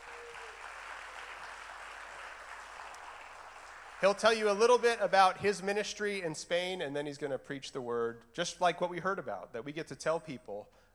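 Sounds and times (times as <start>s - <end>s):
congregation applause welcoming a guest preacher: 0.0s - 5.0s
speech: 4.0s - 10.9s.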